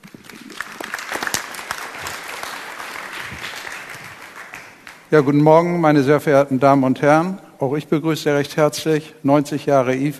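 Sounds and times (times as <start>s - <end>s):
audience applause welcoming a speaker: 0.0s - 5.3s
speech: 5.1s - 10.1s.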